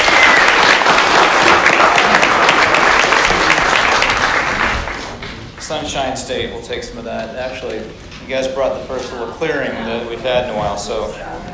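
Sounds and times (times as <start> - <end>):
audience applause welcoming two guests from California: 0.0 - 5.6
speech: 5.9 - 11.5.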